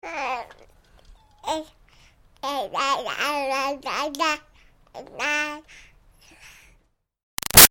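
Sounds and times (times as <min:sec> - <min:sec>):
six-month-old baby babbling ya ya: 0:00.0 - 0:01.8, 0:02.4 - 0:05.6.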